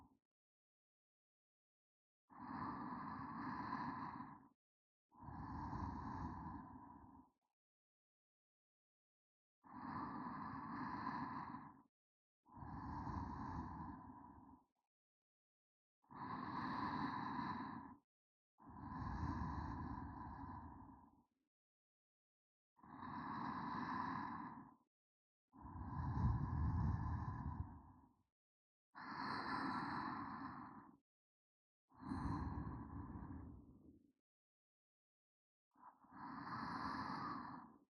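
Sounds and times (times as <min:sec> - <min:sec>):
sleeping breath: 0:02.4 - 0:04.5, 0:05.2 - 0:07.3, 0:09.8 - 0:11.8, 0:12.6 - 0:14.5, 0:16.2 - 0:18.0, 0:18.6 - 0:21.1, 0:22.8 - 0:24.8, 0:25.6 - 0:28.0, 0:29.0 - 0:31.0, 0:31.9 - 0:33.9, 0:35.9 - 0:37.9.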